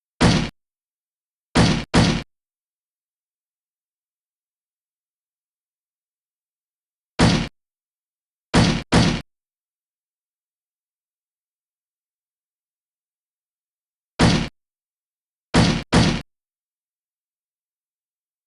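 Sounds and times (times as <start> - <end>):
slam: 0.2 - 0.5, 1.6 - 2.3, 7.2 - 7.5, 8.6 - 9.2, 14.2 - 14.5, 15.6 - 16.2.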